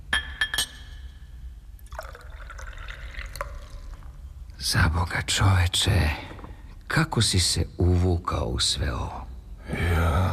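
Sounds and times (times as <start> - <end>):
glass clinks: 0.1 - 1.2
whisky pouring into a glass: 1.8 - 4.3
speech: 4.6 - 6.3, 6.9 - 9.2.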